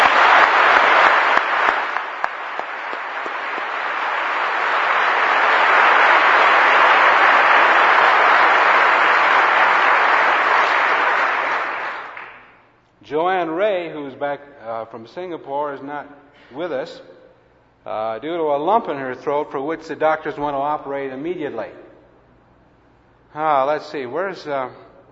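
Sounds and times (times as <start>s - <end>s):
audience applause welcoming guests back from Japan, Lebanon and Indonesia: 0.0s - 12.6s
speech: 14.3s - 17.1s, 17.8s - 21.8s, 23.3s - 24.8s.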